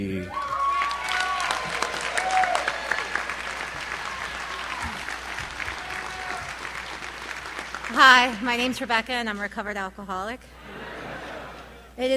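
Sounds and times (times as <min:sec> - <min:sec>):
speech: 0:00.0 - 0:00.4, 0:08.0 - 0:10.6, 0:12.0 - 0:12.1
audience applause welcoming a speaker at a recovery talk: 0:00.4 - 0:08.8
laughter: 0:10.6 - 0:12.0.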